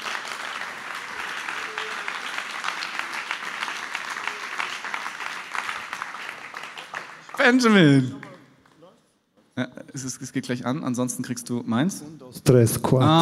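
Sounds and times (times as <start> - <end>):
applause: 0.0 - 8.8
speech: 7.5 - 8.2, 9.6 - 13.2.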